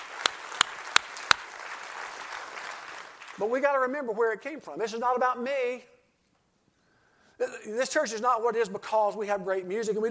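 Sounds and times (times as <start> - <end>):
church audience handclaps: 0.0 - 3.4
speech: 3.4 - 6.0, 7.4 - 10.1.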